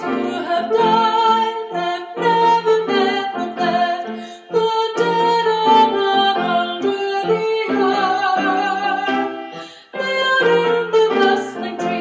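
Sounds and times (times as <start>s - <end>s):
piano: 0.0s - 12.0s
soprano breaths: 4.0s - 4.6s, 9.3s - 10.0s.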